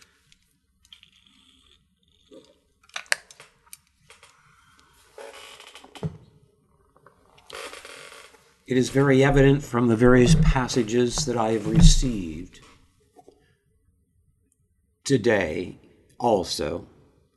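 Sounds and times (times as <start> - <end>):
speech: 8.7 - 12.7, 15.1 - 16.9
person drinking water: 9.2 - 12.4.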